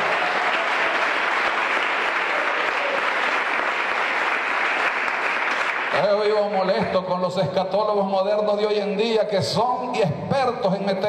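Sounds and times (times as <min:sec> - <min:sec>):
audience applauding: 0:00.0 - 0:06.7
speech: 0:06.0 - 0:11.0.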